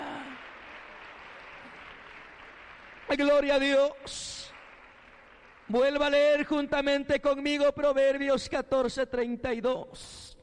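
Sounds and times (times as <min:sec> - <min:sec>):
audience applauding: 0:00.0 - 0:07.0
speech: 0:03.1 - 0:04.5, 0:05.7 - 0:10.2.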